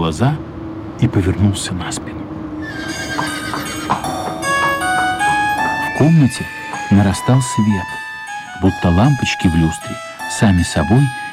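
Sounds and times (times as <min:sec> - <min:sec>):
speech: 0:00.1 - 0:03.3, 0:06.0 - 0:08.0, 0:08.6 - 0:11.2
heavy hard footsteps with bright metallic jingle: 0:02.8 - 0:08.0.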